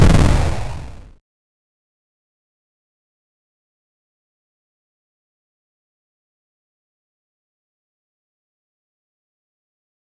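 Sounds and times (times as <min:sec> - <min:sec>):
punch impact: 0:00.0 - 0:01.1.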